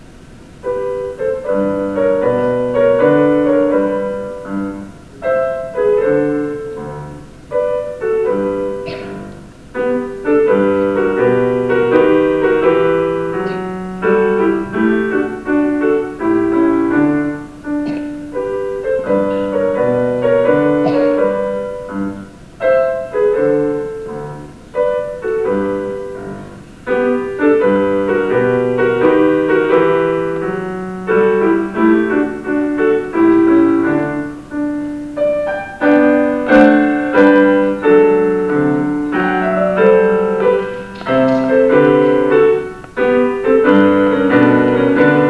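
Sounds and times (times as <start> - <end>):
piano minuet at the festival: 0.0 - 45.2.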